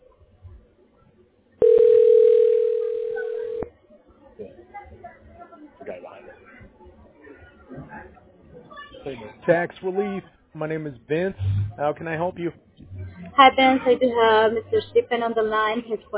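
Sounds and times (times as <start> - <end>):
murmur of chatter: 0.0 - 16.1
telephone dial tone during call transfer: 1.6 - 3.7
speech: 9.1 - 12.6, 13.4 - 16.1.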